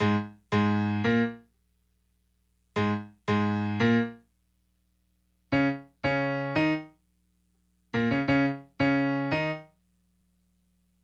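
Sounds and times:
piano: 0:00.0 - 0:01.5, 0:02.8 - 0:04.3, 0:05.5 - 0:07.0, 0:08.0 - 0:09.8.

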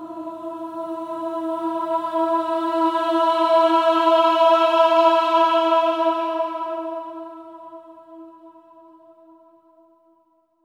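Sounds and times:
choir singing swelling ahs on E4: 0:00.0 - 0:08.3.

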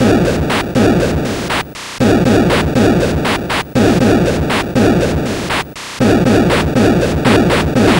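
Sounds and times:
Atari 2600 noise drums: 0:00.0 - 0:07.9.

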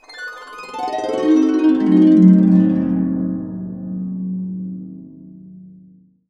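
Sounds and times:
harp cascade down on C diminished seventh: 0:00.0 - 0:06.0.

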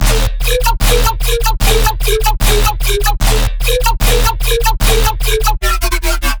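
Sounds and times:
bass loop at 150 bpm in D sharp: 0:00.0 - 0:06.3.

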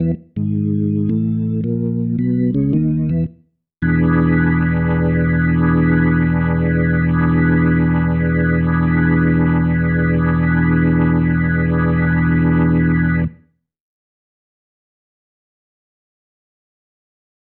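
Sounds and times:
organ ending music: 0:00.0 - 0:13.4.

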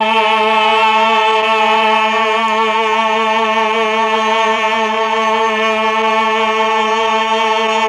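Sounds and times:
choir singing: 0:00.0 - 0:07.8.

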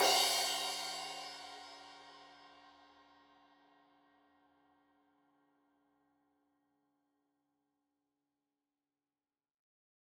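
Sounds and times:
15 inch crash cymbal edge hit: 0:00.0 - 0:02.4.

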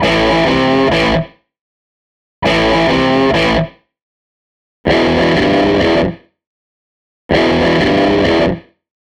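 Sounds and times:
SG electric guitar loop: 0:00.0 - 0:01.3, 0:02.4 - 0:03.7, 0:04.9 - 0:06.2, 0:07.3 - 0:08.6.

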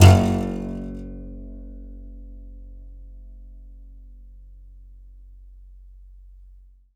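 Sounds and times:
contrabass balalaika plucked strings: 0:00.0 - 0:01.6.

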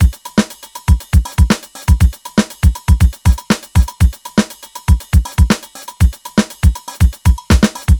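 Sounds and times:
full 120 BPM nu jazz house beat: 0:00.0 - 0:07.9.

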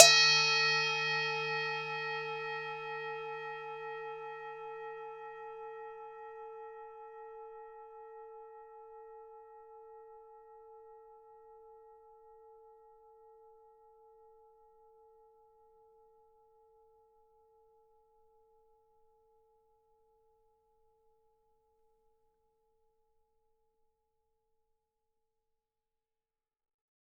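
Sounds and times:
Tibetan singing bowl: 0:00.0 - 0:10.1.

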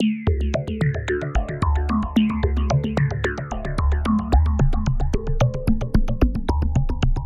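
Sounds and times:
NRG trance synth arpeggio: 0:00.0 - 0:07.1.

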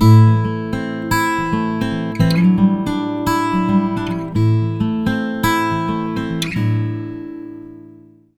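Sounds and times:
acoustic guitar loops: 0:00.0 - 0:08.3.

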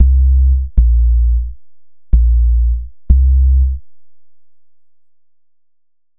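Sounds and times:
futurist drum and bass music: 0:00.0 - 0:01.6, 0:02.2 - 0:03.8.

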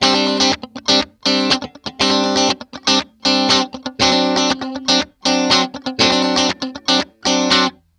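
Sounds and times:
disco guitar chord lick: 0:00.0 - 0:07.8.

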